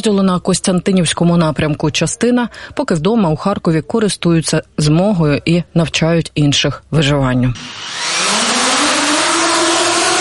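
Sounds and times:
speech: 0.0 - 8.2
FPV drone flying with high-pitched buzzing whine: 7.6 - 10.2.

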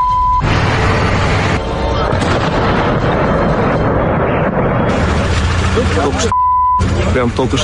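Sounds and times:
explosions from an air attack: 0.2 - 7.4
short steady beep: 6.3 - 6.9.

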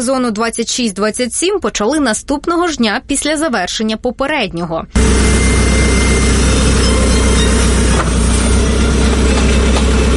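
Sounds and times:
speech: 0.0 - 5.3
excavator heavy diesel engine running: 0.0 - 10.1.

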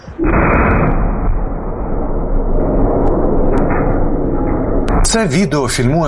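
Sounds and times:
low roar and rumble: 0.0 - 6.0
artillery shell explosion: 0.1 - 6.0
speech: 5.2 - 6.0.

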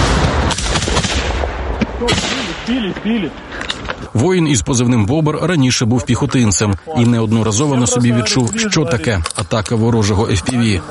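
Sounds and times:
gunfire from soldiers shooting at FPV drone: 0.0 - 3.0
speech: 2.0 - 10.8.

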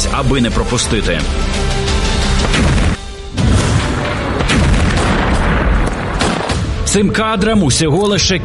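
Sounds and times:
speech: 0.2 - 2.8, 6.9 - 8.4
heavy cannonade of booming explosions: 2.4 - 6.9.

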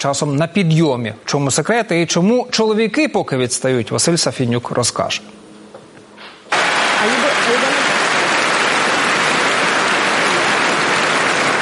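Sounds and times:
speech: 0.0 - 5.5
large tennis crowd applause: 6.5 - 11.5.

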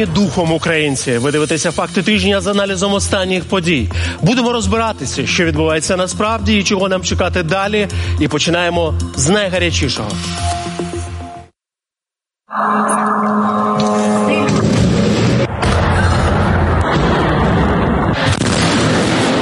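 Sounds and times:
speech: 0.0 - 10.6
tonal whine: 12.5 - 17.2
explosions from a drone strike: 14.2 - 19.4.

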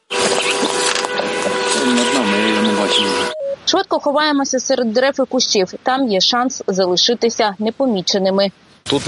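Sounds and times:
enemy drone buzzing in the sky: 0.0 - 3.7
speech: 3.0 - 9.0
rough noise: 3.3 - 9.0.

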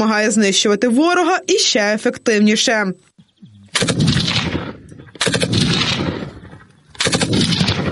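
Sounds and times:
speech: 0.0 - 3.1
machine gun fire: 3.7 - 7.9.

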